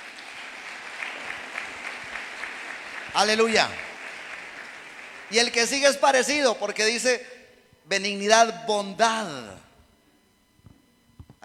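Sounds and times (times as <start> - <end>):
audience applause: 0.0 - 6.1
speech: 3.2 - 3.8, 5.3 - 7.3, 7.9 - 9.6.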